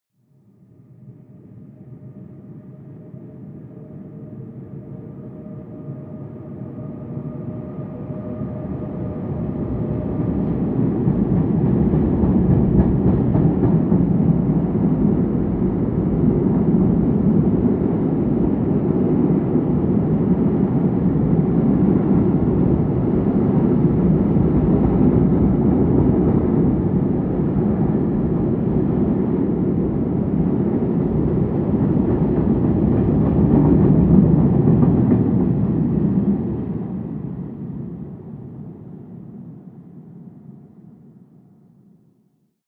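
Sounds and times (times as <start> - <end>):
distant freight train driving by: 7.0 - 37.7.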